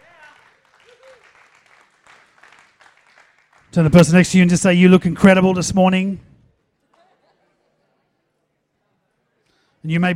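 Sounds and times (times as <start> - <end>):
audience applause: 0.0 - 3.7
speech: 3.7 - 6.3, 9.9 - 10.1.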